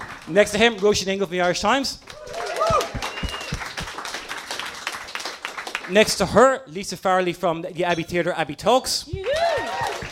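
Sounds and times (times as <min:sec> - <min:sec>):
audience clapping: 0:00.0 - 0:06.4, 0:09.2 - 0:10.1
speech: 0:00.3 - 0:02.8, 0:05.9 - 0:09.3.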